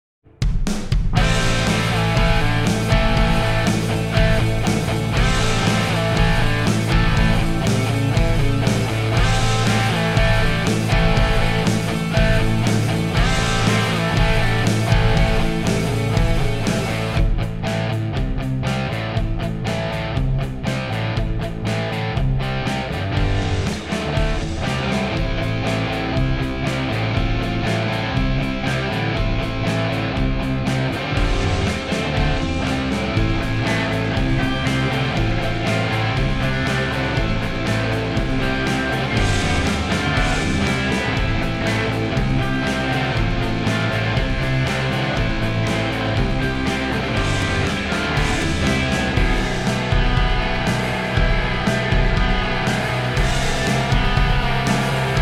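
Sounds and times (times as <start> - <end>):
1980s rock music: 0.3 - 55.2.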